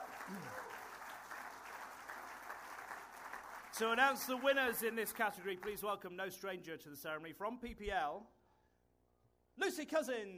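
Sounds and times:
audience applause: 0:00.0 - 0:05.8
speech: 0:00.3 - 0:00.7, 0:03.8 - 0:08.4, 0:09.6 - 0:10.3.

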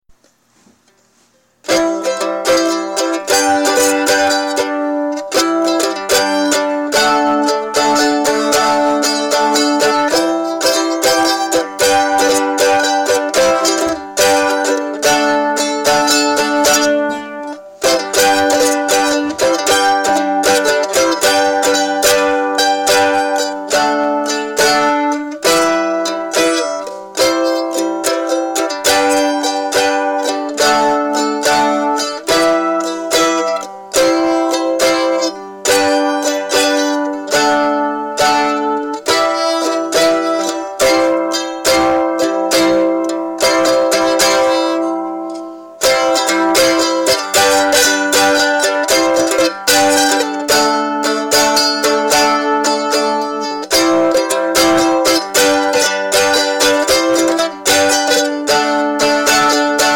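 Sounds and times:
mandolin playing: 0:00.1 - 0:59.9.

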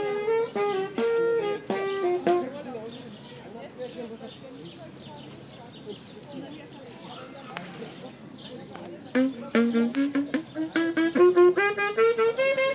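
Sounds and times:
saxophone at Treptower Park: 0:00.0 - 0:02.8, 0:09.1 - 0:12.7.

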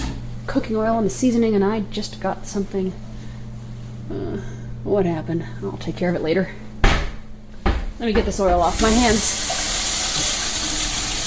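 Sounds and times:
speech: 0:00.5 - 0:03.1, 0:04.1 - 0:06.6, 0:08.0 - 0:09.5
hot water running from tap: 0:08.6 - 0:11.2.

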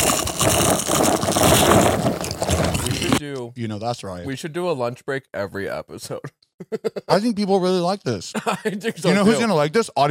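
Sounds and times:
crunchy biting and chewing into a sandwich: 0:00.0 - 0:03.2
speech: 0:03.5 - 0:10.0
laughter: 0:06.6 - 0:07.4, 0:08.3 - 0:09.4.

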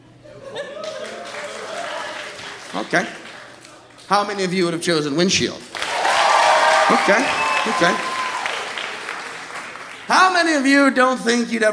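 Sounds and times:
laughter: 0:00.2 - 0:02.2
audience clapping: 0:00.8 - 0:04.4, 0:05.6 - 0:10.8
speech: 0:02.8 - 0:03.2, 0:04.1 - 0:05.7, 0:06.9 - 0:08.1, 0:10.1 - 0:11.7.

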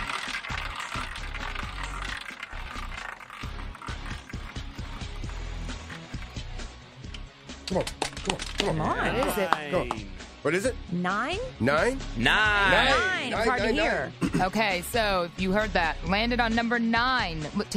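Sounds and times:
prize wheel spinning and clicking: 0:00.0 - 0:06.7
speech: 0:07.7 - 0:17.7.

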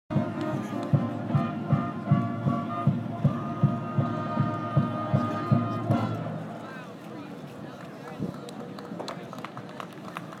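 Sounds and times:
marching band: 0:00.1 - 0:06.9.

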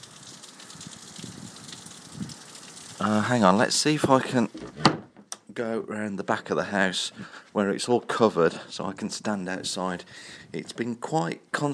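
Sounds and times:
rain in gale-force wind: 0:00.0 - 0:04.5
gale-force wind: 0:00.8 - 0:02.4
speech: 0:03.0 - 0:04.5, 0:05.6 - 0:11.7.

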